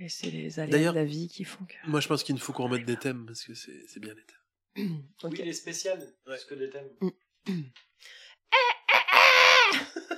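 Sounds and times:
speech: 0.0s - 8.8s, 9.7s - 10.1s
rooster crowing: 8.6s - 9.8s.

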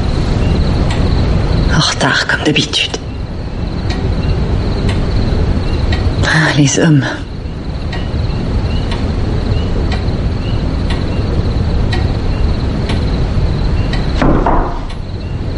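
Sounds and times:
rushing wind-like noise: 0.0s - 15.5s
speech: 1.8s - 3.0s, 6.3s - 7.2s
knocking on a door: 14.2s - 15.0s.

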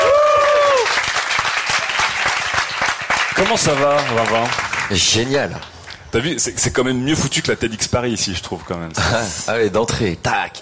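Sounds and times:
audience applauding: 0.0s - 5.7s
speech: 3.4s - 10.6s.

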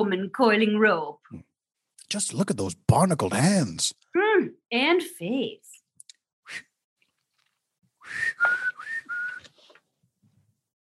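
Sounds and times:
speech: 0.0s - 1.5s, 2.1s - 5.7s, 6.5s - 6.7s, 8.1s - 8.9s
person whistling a tune: 8.0s - 9.6s.

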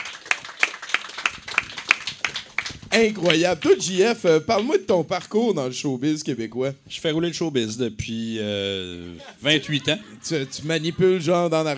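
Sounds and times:
audience clapping in unison: 0.0s - 4.8s
speech: 2.9s - 11.7s
laughter: 9.1s - 11.7s.

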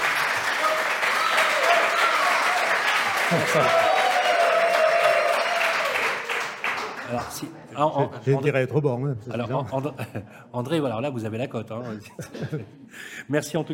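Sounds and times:
audience applause: 0.0s - 7.4s
laughter: 3.0s - 4.0s, 11.8s - 13.0s
speech: 3.3s - 4.0s, 7.1s - 13.7s.

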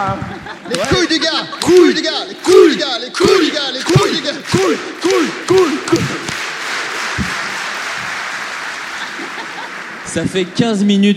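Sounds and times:
laughter: 0.0s - 6.2s, 7.1s - 10.8s
speech: 0.0s - 6.2s, 10.1s - 11.1s
applause: 3.2s - 10.8s.

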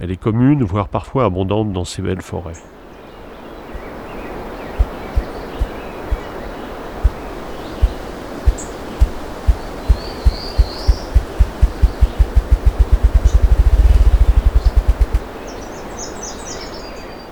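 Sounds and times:
speech: 0.0s - 2.8s
ruffed grouse drumming its wings: 4.7s - 6.4s, 7.0s - 15.3s.

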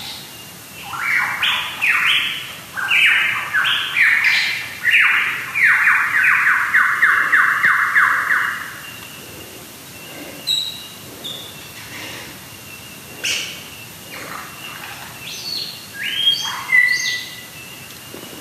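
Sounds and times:
lyrebird song of clear whistled notes: 0.8s - 9.2s, 10.0s - 11.8s, 14.2s - 17.6s.

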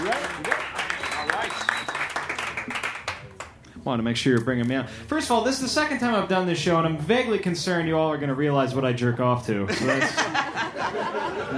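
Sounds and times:
audience clapping at a live show: 0.0s - 3.6s
speech: 3.9s - 11.5s
laughter: 9.6s - 11.5s.

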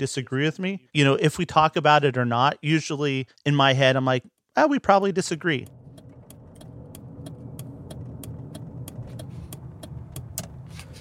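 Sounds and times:
speech: 0.0s - 5.8s
car on a morning drive to work: 5.5s - 10.9s.

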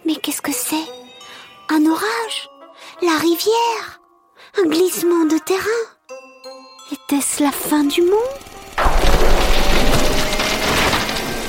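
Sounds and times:
speech: 1.8s - 4.0s, 4.6s - 5.9s, 7.1s - 8.5s
large tree cracking and splintering as it falls: 8.8s - 11.4s.

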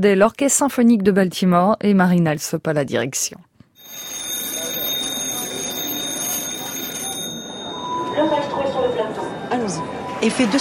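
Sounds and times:
speech: 0.0s - 4.1s, 9.7s - 10.5s
ringing chime announcing a segment: 3.8s - 10.2s.

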